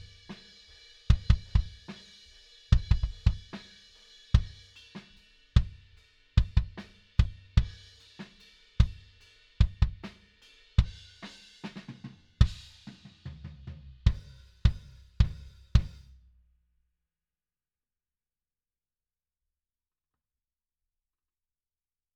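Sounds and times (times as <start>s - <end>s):
kick drum: 1.1s - 1.8s, 2.7s - 3.5s, 6.4s - 7.8s, 9.6s - 10.0s, 12.4s - 12.7s, 14.1s - 16.1s.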